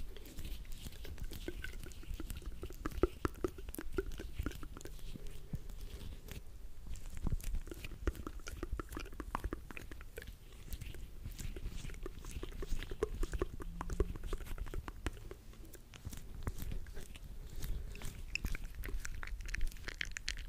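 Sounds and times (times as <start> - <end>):
ASMR wet mouth sounds: 0.0 - 20.4.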